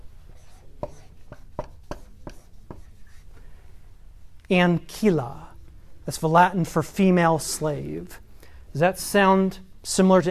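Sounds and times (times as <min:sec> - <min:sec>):
quiet hiss: 0:00.0 - 0:10.3
word being written down by hand: 0:00.3 - 0:03.3
speech: 0:04.5 - 0:05.4, 0:06.1 - 0:10.3.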